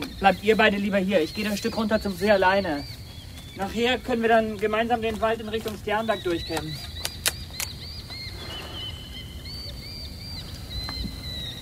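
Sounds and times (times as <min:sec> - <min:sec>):
hawks calling: 0:00.0 - 0:11.6
speech: 0:00.2 - 0:03.0, 0:03.6 - 0:06.9
hawks flapping wings: 0:01.4 - 0:09.6.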